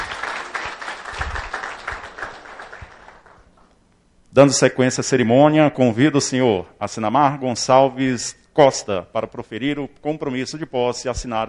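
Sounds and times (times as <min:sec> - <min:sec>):
crowd applauding: 0:00.0 - 0:03.6
speech: 0:04.4 - 0:11.4.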